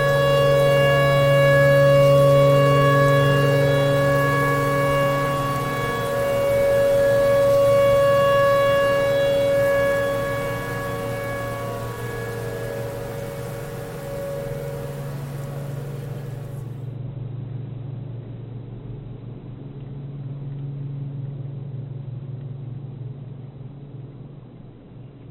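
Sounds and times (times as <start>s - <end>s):
tornado siren: 0.0s - 17.0s.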